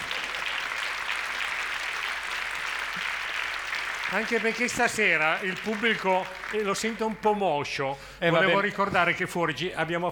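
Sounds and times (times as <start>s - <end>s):
audience applause: 0.0s - 7.4s
speech: 4.1s - 10.1s.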